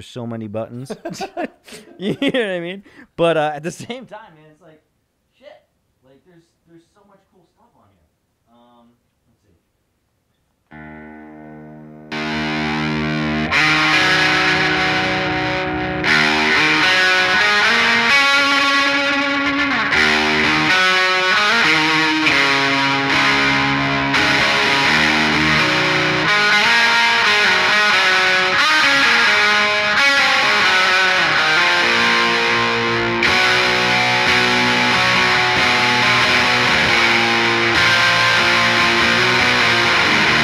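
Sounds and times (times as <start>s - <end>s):
speech: 0.0s - 7.5s
laughter: 0.8s - 2.8s
fuzz-distorted electric guitar through a delay pedal: 10.7s - 40.4s.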